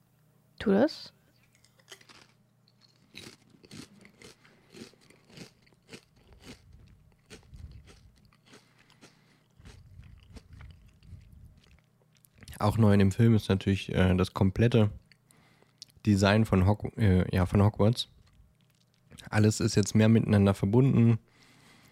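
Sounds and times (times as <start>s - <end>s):
speech: 0.6s - 1.2s, 12.6s - 15.0s, 16.0s - 18.2s, 19.3s - 21.3s
crunching and chewing a spicy potato chip: 1.4s - 12.7s, 15.0s - 16.0s, 18.1s - 19.3s.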